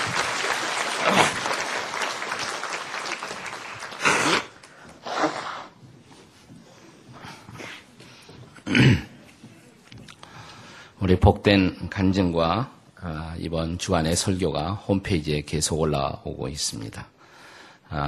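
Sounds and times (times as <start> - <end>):
audience clapping: 0.0 - 5.0
speech: 11.1 - 17.2.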